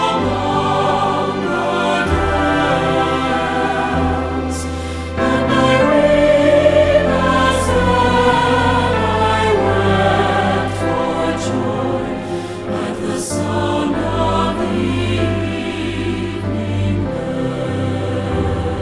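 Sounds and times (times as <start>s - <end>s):
choir singing: 0.0s - 18.8s.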